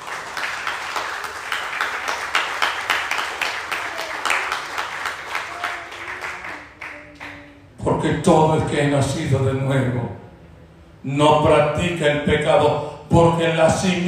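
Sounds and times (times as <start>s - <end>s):
congregation applause during a Spanish-language church sermon: 0.0s - 7.6s
speech: 8.0s - 10.2s, 11.0s - 14.0s.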